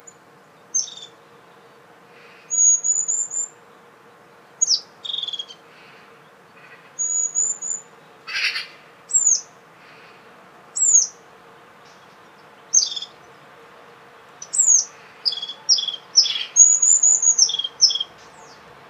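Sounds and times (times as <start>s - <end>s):
European crested tit high trilled call: 0.7s - 1.2s, 2.5s - 3.6s, 4.6s - 5.6s, 7.0s - 9.5s, 12.7s - 13.2s, 14.4s - 18.6s.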